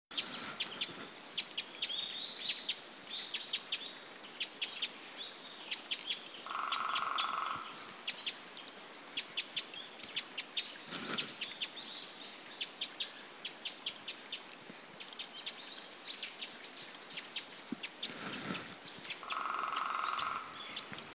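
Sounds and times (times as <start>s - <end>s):
Eurasian wren ticking calls: 0.1s - 21.1s.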